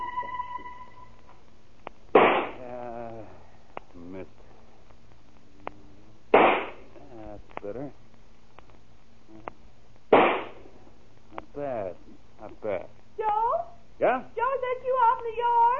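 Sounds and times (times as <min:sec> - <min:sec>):
rifle shots: 0:02.2 - 0:02.6, 0:06.3 - 0:06.8, 0:10.1 - 0:10.6
people talking: 0:02.6 - 0:03.4, 0:04.0 - 0:04.3, 0:07.0 - 0:07.9, 0:11.3 - 0:15.7.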